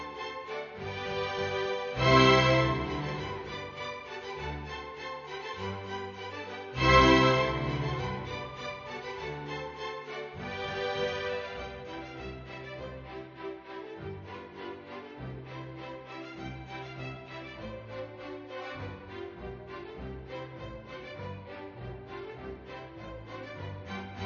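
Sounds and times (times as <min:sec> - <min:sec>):
polka music: 0:00.0 - 0:12.6.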